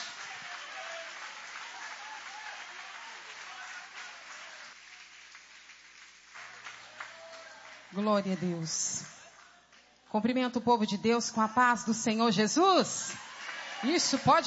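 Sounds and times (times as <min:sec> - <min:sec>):
audience applauding: 0:00.0 - 0:10.1, 0:13.1 - 0:14.4
speech: 0:07.9 - 0:09.2, 0:10.1 - 0:13.2, 0:13.8 - 0:14.4.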